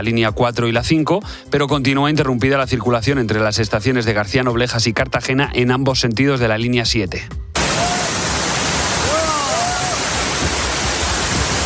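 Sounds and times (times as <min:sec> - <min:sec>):
speech: 0:00.0 - 0:07.4
heavy rain pouring down on tents: 0:07.6 - 0:11.6.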